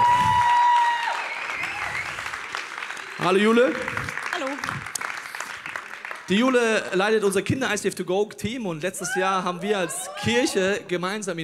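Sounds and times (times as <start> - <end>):
live audience applauding a guest on stage: 0.0 - 7.3
speech: 3.2 - 4.9, 6.3 - 11.4.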